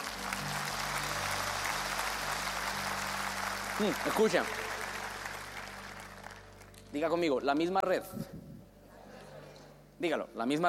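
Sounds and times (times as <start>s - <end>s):
audience applauding: 0.0s - 6.9s
speech: 3.8s - 4.6s, 6.9s - 8.4s, 10.0s - 10.6s.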